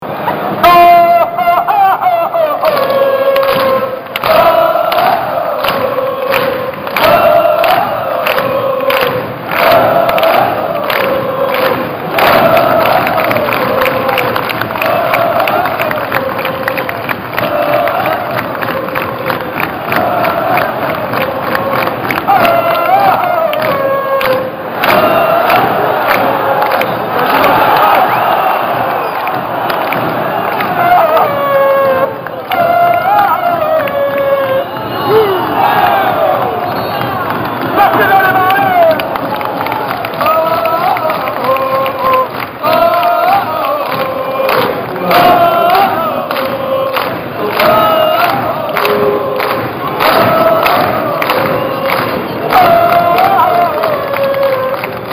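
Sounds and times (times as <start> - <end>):
laughter: 0.2 - 3.3
person singing ohohoh: 0.4 - 55.1.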